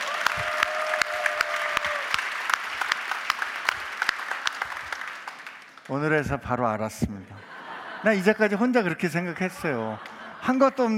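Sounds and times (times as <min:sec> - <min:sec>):
audience applause: 0:00.0 - 0:06.1
speech: 0:05.9 - 0:10.9
laughter: 0:07.3 - 0:10.9.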